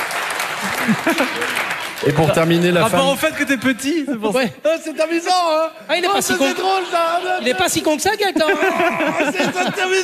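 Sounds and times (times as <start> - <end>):
audience applause: 0.0 - 3.3
laughter: 0.6 - 1.8, 4.8 - 10.0
speech: 0.8 - 10.0.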